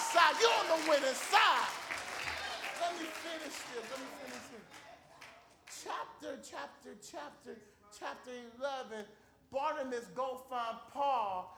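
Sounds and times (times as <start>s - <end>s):
audience clapping: 0.0s - 5.9s
speech: 0.2s - 1.8s, 2.8s - 4.9s, 5.8s - 11.5s.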